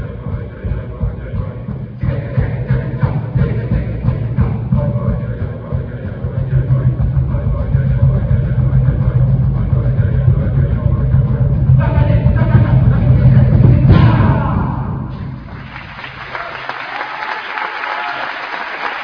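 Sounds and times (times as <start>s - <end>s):
chanting: 0.0s - 15.1s.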